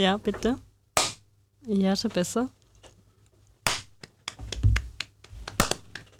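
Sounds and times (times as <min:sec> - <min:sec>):
speech: 0:00.0 - 0:00.6, 0:01.6 - 0:02.6
single hand clap used as slate: 0:03.7 - 0:06.1.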